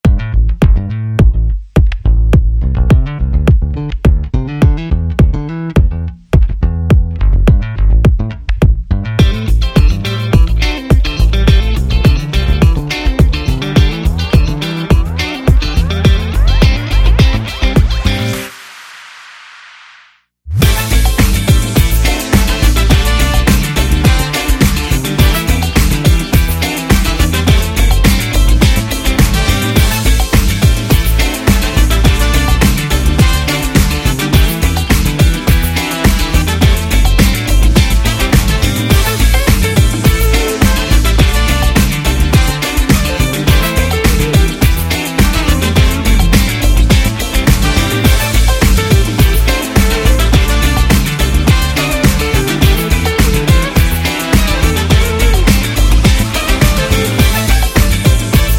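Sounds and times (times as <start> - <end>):
funk music: 0.0 - 18.6, 20.5 - 58.5.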